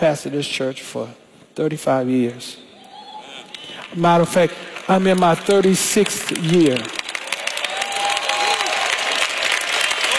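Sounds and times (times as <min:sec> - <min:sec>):
speech: 0:00.0 - 0:02.7, 0:03.9 - 0:07.0
audience clapping: 0:03.5 - 0:10.1.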